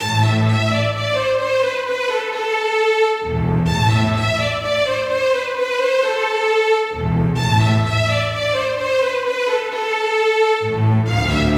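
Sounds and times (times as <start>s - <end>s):
strings: 0.0s - 11.5s.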